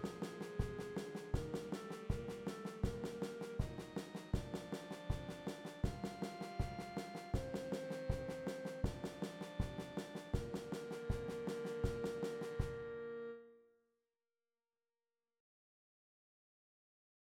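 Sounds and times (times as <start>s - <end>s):
percussion: 0.0s - 12.6s.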